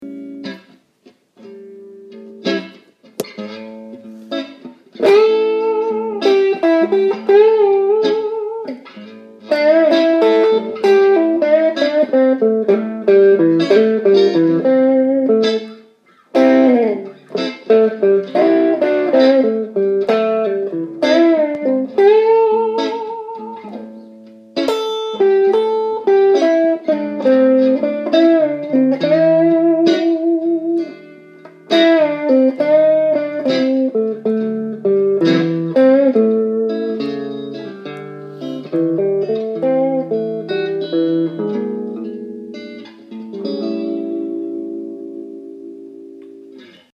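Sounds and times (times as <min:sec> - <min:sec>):
blues guitar playing major and minor pentatonic scales: 0:00.0 - 0:46.9.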